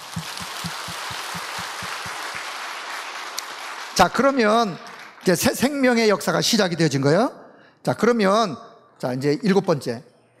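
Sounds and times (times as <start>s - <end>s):
audience applause: 0.0s - 5.2s
speech: 4.0s - 10.1s.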